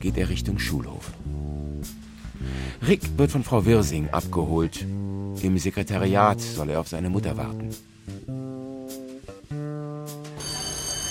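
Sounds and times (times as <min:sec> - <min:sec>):
speech: 0:00.0 - 0:02.0, 0:02.8 - 0:08.0
school bell ringing: 0:10.4 - 0:11.0.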